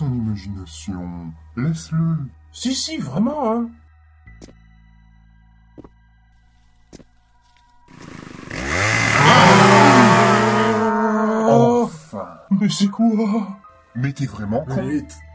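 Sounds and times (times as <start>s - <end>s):
speech: 0.4s - 3.8s, 12.2s - 15.3s
chainsaw revving: 7.9s - 11.0s.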